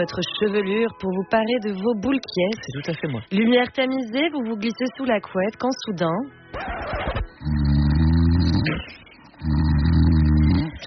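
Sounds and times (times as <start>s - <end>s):
speech: 0.0s - 7.0s
person snoring: 7.4s - 8.8s, 9.4s - 10.8s.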